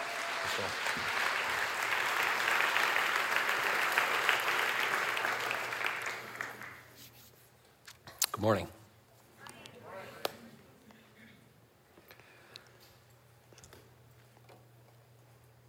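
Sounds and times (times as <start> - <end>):
audience applause welcoming a speaker to the stage: 0.0 - 6.9
speech: 0.4 - 1.2, 8.4 - 8.8.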